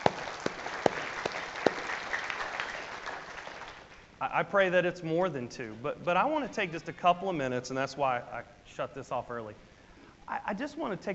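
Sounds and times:
audience applause: 0.0 - 4.0
speech: 4.2 - 9.7, 10.3 - 11.1.

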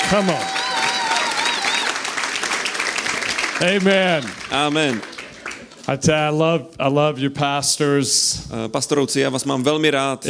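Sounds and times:
high cheer or whistle: 0.0 - 2.1
audience applause: 0.0 - 6.0
speech: 0.1 - 0.6, 3.6 - 5.1, 5.9 - 10.2.

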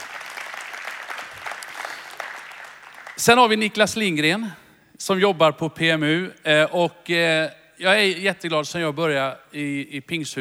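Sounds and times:
audience applause: 0.0 - 3.2
speech: 3.2 - 10.3.

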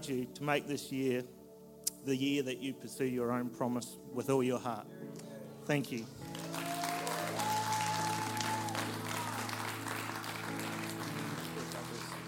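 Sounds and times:
speech: 0.0 - 1.4, 2.0 - 6.4
sustained organ-like chords: 0.0 - 6.6, 7.2 - 12.2
audience applause: 6.2 - 12.2.

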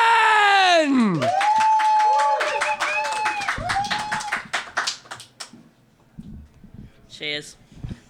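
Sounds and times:
audience applause: 0.9 - 5.5.

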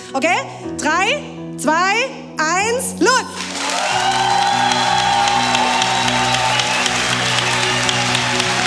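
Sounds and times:
speech: 0.1 - 4.3
crowd applause: 3.4 - 8.6.

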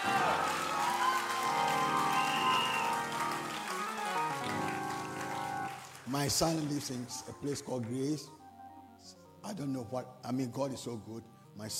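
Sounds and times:
audience clapping: 0.0 - 8.0
speech: 6.1 - 8.4, 9.0 - 11.7.

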